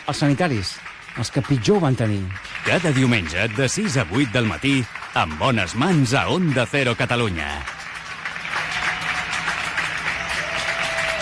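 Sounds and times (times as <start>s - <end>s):
applause from balconies for health workers: 0.0s - 11.1s
speech: 0.1s - 7.8s.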